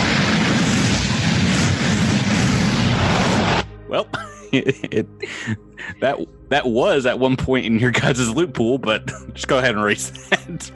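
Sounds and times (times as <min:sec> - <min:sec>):
blaze rifle sound effect, roaring rush of fiery noise: 0:00.0 - 0:04.0
laughter: 0:03.9 - 0:06.2, 0:08.9 - 0:10.7
speech: 0:04.0 - 0:10.7.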